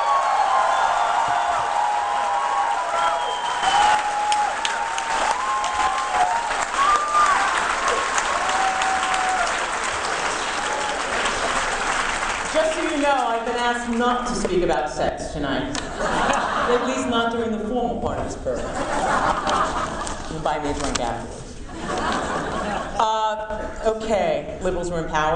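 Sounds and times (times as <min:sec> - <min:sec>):
audience whoops: 0:00.0 - 0:11.9
audience applause for a speaker: 0:00.0 - 0:13.3
speech: 0:13.7 - 0:22.2, 0:23.0 - 0:25.3
laughter: 0:15.8 - 0:17.1, 0:18.5 - 0:20.3, 0:21.6 - 0:23.0.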